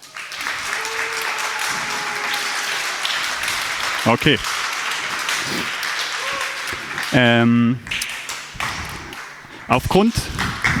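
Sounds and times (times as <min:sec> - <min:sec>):
audience applause: 0:00.0 - 0:10.7
speech: 0:04.0 - 0:04.6, 0:05.5 - 0:05.8, 0:07.1 - 0:08.0, 0:09.7 - 0:10.7.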